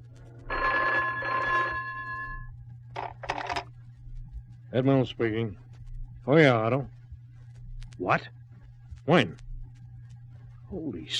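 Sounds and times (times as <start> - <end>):
telephone ringing: 0.4 - 3.6
speech: 4.7 - 5.6, 6.3 - 7.0, 8.0 - 8.4, 9.1 - 9.5, 10.7 - 11.1.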